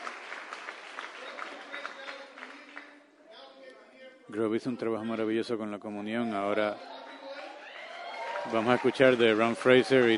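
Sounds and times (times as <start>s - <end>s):
audience applause: 0.0s - 2.9s, 6.9s - 10.1s
speech: 4.3s - 6.9s, 8.5s - 10.1s.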